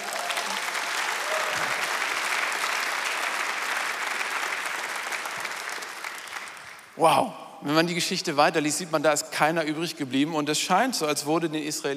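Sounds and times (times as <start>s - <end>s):
applause: 0.0s - 7.0s
speech: 7.0s - 11.9s.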